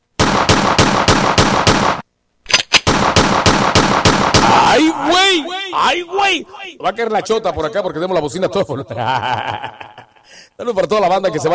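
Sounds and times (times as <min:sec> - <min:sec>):
rapid gunfire: 0:00.2 - 0:02.0, 0:02.8 - 0:04.7
laughter: 0:04.8 - 0:10.4
speech: 0:05.8 - 0:11.5.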